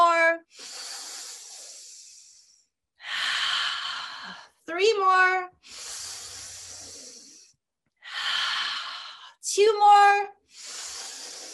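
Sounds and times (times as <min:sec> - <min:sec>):
deep breathing during a guided breathing exercise: 0:00.5 - 0:04.6, 0:05.6 - 0:09.4, 0:10.5 - 0:11.5
speech: 0:04.7 - 0:05.9, 0:09.6 - 0:10.7.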